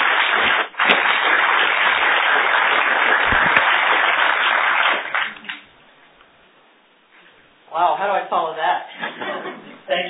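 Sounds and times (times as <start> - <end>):
audience applause welcoming a speaker to the stage: 0.0 - 5.6
laughter: 8.9 - 9.9.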